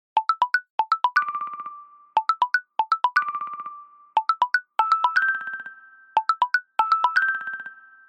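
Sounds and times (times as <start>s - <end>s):
mobile phone ringtone: 0.2s - 8.0s.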